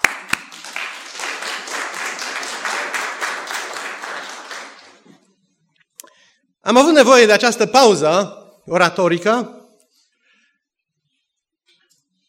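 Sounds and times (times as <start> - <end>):
audience applause during a talk: 0.0 - 5.2
speech: 6.7 - 9.6.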